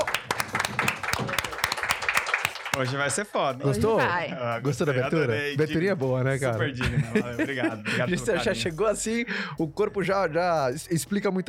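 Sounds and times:
group of people applauding: 0.0s - 3.0s
speech: 2.8s - 11.4s.

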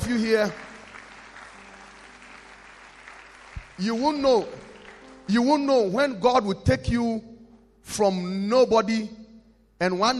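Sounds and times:
church congregation clapping during a sermon: 0.0s - 6.2s
speech: 0.1s - 0.7s, 3.8s - 4.7s, 5.3s - 9.2s, 9.8s - 10.1s.

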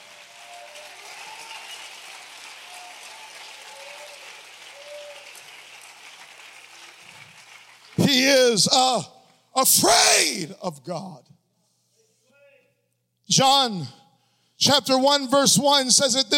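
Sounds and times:
audience clapping hands: 0.0s - 9.4s
speech: 8.0s - 11.4s, 13.3s - 14.0s, 14.6s - 16.3s.

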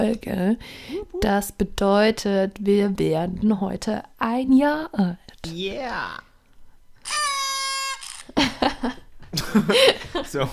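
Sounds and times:
speech: 0.0s - 6.3s, 8.4s - 10.5s
party horn toot played from internet: 7.0s - 8.4s
laughter: 8.4s - 10.5s.

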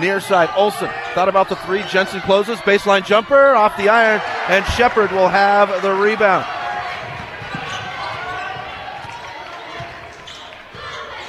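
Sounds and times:
commentator talking: 0.0s - 6.5s
speech: 0.0s - 6.6s
steady roar of crowd noise at a basketball game: 0.0s - 11.2s
basketball dribbled on the court during a game: 5.8s - 11.1s.

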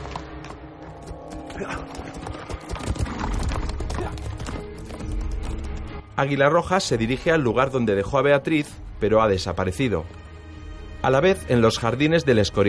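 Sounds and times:
horse galloping in a Spanish historical adventure film: 1.0s - 6.0s
speech: 1.6s - 2.3s, 6.2s - 10.2s, 11.0s - 12.6s.

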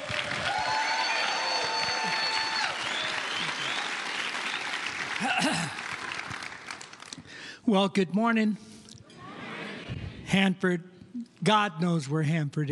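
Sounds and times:
church congregation clapping welcoming a pastor at Sunday service: 0.0s - 7.5s
speech: 5.2s - 5.8s, 7.6s - 8.6s, 10.3s - 12.6s.

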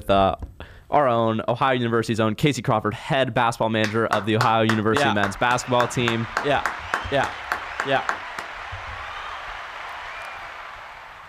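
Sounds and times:
speech: 0.1s - 8.2s
applause: 3.8s - 11.2s.

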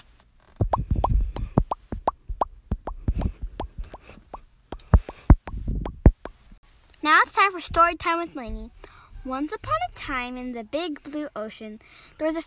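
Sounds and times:
voice imitating octopus sneaking out of tank with wet mouth pops: 0.6s - 6.4s
speech: 7.1s - 12.4s.

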